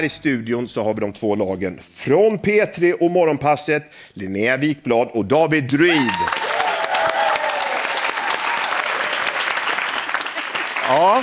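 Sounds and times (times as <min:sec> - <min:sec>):
speech: 0:00.0 - 0:06.4, 0:10.9 - 0:11.2
one person clapping hands: 0:05.9 - 0:11.2.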